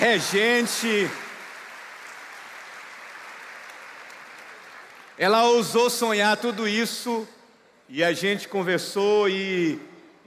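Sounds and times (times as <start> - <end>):
speech: 0.0 - 1.3, 5.2 - 9.9
audience applause: 0.0 - 5.7.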